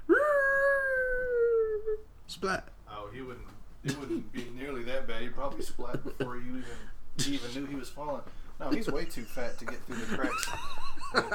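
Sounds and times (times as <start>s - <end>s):
dog whimpering: 0.0s - 2.1s
laughter: 0.1s - 2.0s, 3.9s - 11.3s
speech: 2.3s - 11.3s.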